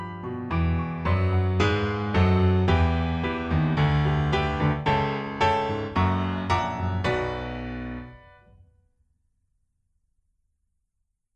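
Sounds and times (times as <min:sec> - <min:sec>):
piano: 0:00.0 - 0:09.0.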